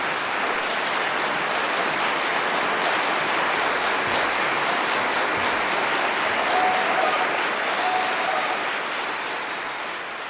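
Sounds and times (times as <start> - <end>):
audience applause after live performance: 0.0 - 10.2.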